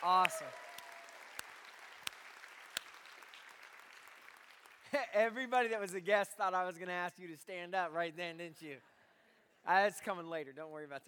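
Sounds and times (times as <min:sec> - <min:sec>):
speech: 0:00.0 - 0:00.8, 0:04.9 - 0:08.9, 0:09.6 - 0:11.0
crowd round of applause: 0:00.0 - 0:05.1.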